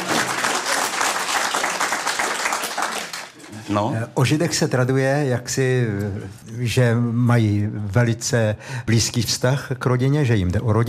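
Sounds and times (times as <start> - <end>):
crowd applause: 0.0 - 3.6
speech: 3.7 - 10.8.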